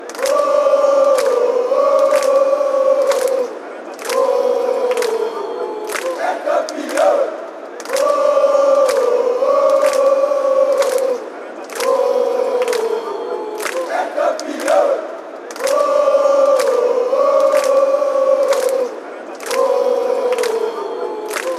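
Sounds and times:
fans chanting: 0.0s - 21.5s.

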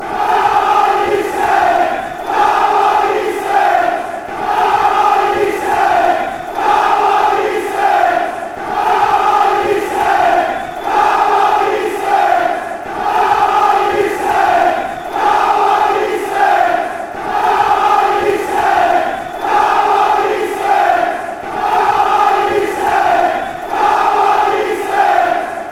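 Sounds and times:
people chanting: 0.0s - 25.7s.

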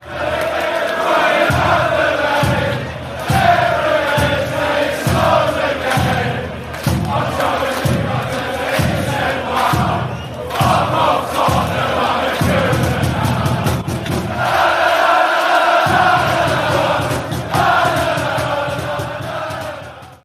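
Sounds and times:
players chanting: 0.0s - 20.2s.

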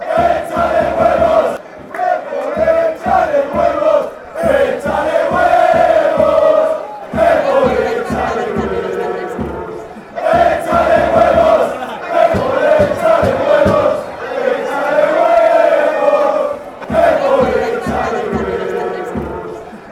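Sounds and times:
football songs: 0.0s - 19.9s
soccer chants: 0.0s - 19.9s
laughter: 0.4s - 19.9s.

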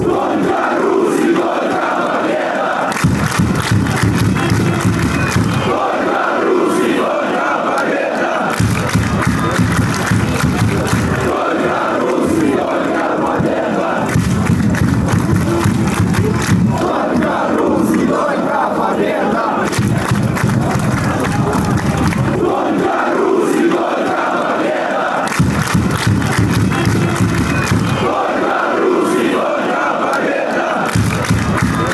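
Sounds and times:
football fans chanting: 0.0s - 31.9s
drums: 3.0s - 5.8s, 8.6s - 11.4s, 14.1s - 17.0s, 19.7s - 22.5s, 25.3s - 28.2s, 30.9s - 31.9s.

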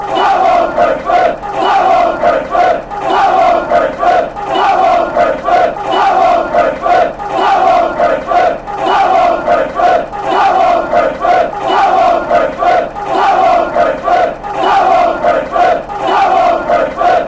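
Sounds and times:
chanting: 0.0s - 17.2s.

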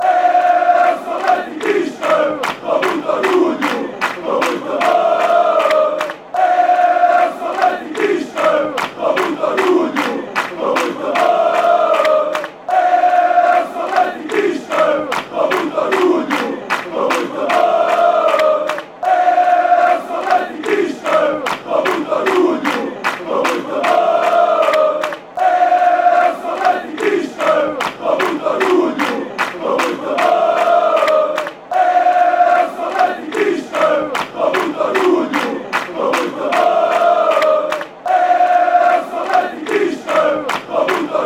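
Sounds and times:
football fans chanting: 0.0s - 41.2s.

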